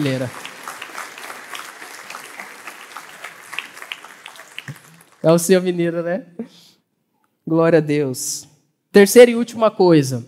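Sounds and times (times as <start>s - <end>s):
speech: 0.0s - 0.5s, 5.2s - 6.7s, 7.5s - 10.2s
audience applause: 0.0s - 5.8s.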